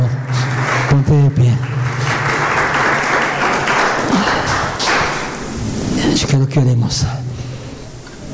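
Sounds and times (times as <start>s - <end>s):
audience applause: 0.0s - 5.5s
speech: 1.1s - 1.8s, 6.4s - 7.2s.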